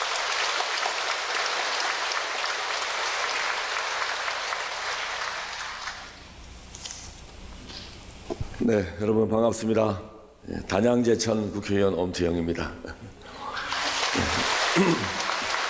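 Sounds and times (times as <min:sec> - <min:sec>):
crowd applause: 0:00.0 - 0:06.2, 0:13.4 - 0:15.6
speech: 0:08.6 - 0:13.2, 0:14.8 - 0:15.2.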